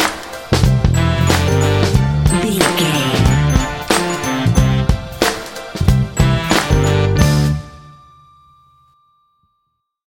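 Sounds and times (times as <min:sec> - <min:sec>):
cute baby funk music: 0:01.0 - 0:07.2.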